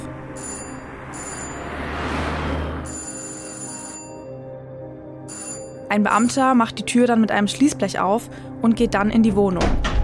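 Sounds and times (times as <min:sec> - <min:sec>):
doorbell ringing: 0:00.2 - 0:01.9, 0:02.8 - 0:04.5, 0:05.2 - 0:06.4
speech: 0:05.9 - 0:09.9.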